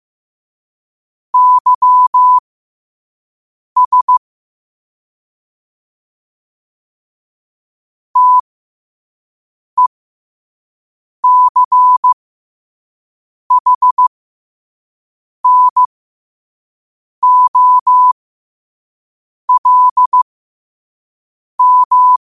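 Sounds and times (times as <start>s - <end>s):
morse code at 5 wpm: 1.4s - 2.4s, 3.8s - 4.2s, 8.2s - 8.4s, 11.2s - 12.2s, 13.5s - 14.0s, 15.4s - 15.9s, 17.2s - 18.2s, 19.5s - 20.2s, 21.6s - 22.2s.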